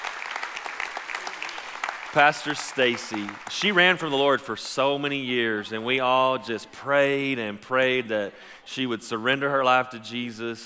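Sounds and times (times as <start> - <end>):
audience applause: 0.0 - 4.4
speech: 2.1 - 10.6.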